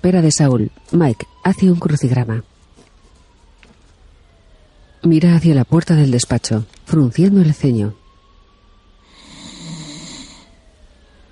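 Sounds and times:
speech: 0.0 - 2.5, 5.0 - 8.0
room hiss: 8.1 - 11.3
man snoring while sleeping standing up: 9.0 - 10.6.

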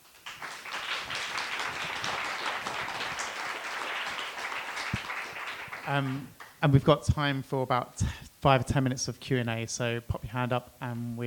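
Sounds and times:
audience applause for a panel: 0.0 - 6.5
speech: 5.9 - 11.2.

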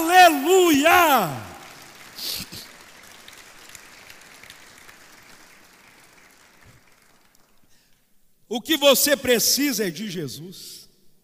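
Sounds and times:
audience applauding: 0.0 - 7.9
speech: 0.5 - 1.5, 8.5 - 10.8.

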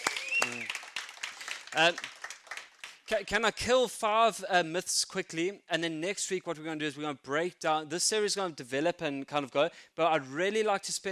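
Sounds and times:
voiced cheers or whoops: 0.0 - 0.8
audience applause: 0.0 - 3.0
speech: 1.7 - 2.2, 3.1 - 11.1.

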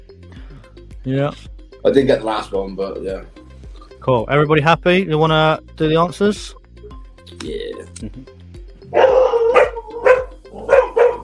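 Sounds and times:
speech: 1.0 - 3.4, 4.0 - 6.6, 7.3 - 9.2
dogs barking: 8.9 - 11.2.

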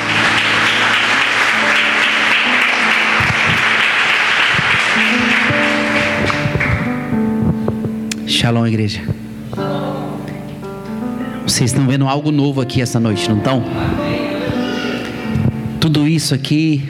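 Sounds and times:
audience applause: 0.0 - 6.9
sustained organ-like tones: 0.0 - 16.0
speech: 8.4 - 9.2, 11.6 - 14.2, 15.9 - 16.8.

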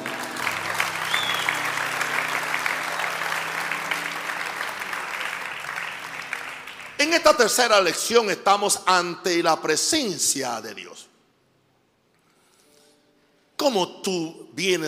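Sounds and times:
audience applause: 0.0 - 7.3
speech: 7.0 - 11.1, 13.6 - 14.8.

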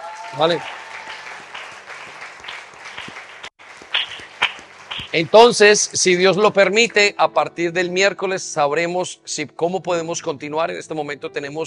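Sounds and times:
audience applause: 0.0 - 5.7
speech: 0.3 - 0.8, 5.1 - 11.6.

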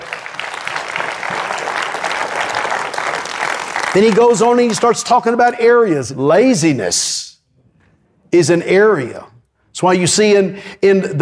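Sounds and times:
audience clapping: 0.0 - 5.1
speech: 3.9 - 7.3, 8.3 - 11.2.

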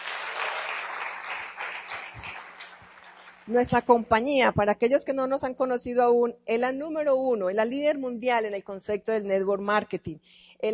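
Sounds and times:
audience applause: 0.0 - 3.6
speech: 3.5 - 10.7.

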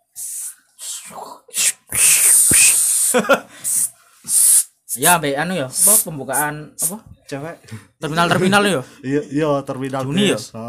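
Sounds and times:
spray can hissing: 0.2 - 0.9, 1.6 - 5.1, 5.8 - 7.0
speech: 1.1 - 2.2, 3.1 - 3.9, 5.0 - 10.6.

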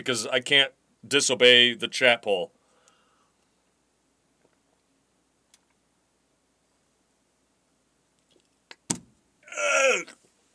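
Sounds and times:
speech: 0.0 - 2.6, 9.7 - 10.2
person burping: 9.5 - 10.2.

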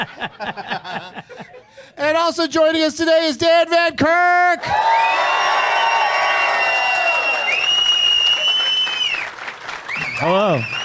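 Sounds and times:
laughter: 0.0 - 1.9
speech: 0.0 - 5.6, 10.2 - 10.8
crowd cheering and applause: 4.6 - 10.8
audience member whistling: 7.5 - 9.3.

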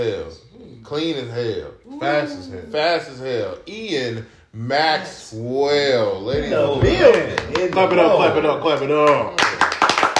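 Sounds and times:
speech: 0.0 - 9.4
hand clapping: 6.7 - 10.1.

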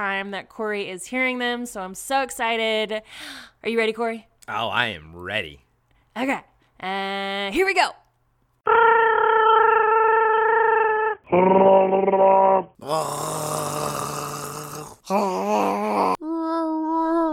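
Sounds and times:
speech: 0.0 - 5.6, 6.2 - 8.0, 8.7 - 9.0, 11.3 - 14.3, 15.1 - 17.2
people imitating a Wookiee roar: 8.7 - 16.2.

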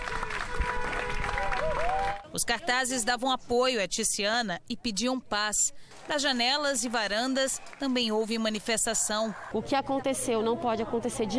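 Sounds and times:
crowd applause at a demonstration: 0.0 - 2.3, 6.0 - 8.0
speech: 2.3 - 11.3.

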